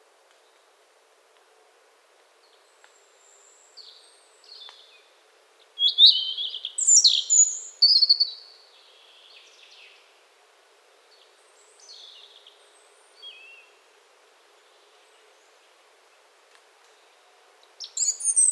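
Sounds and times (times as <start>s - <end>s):
European robin song: 5.8s - 8.4s, 17.8s - 18.5s.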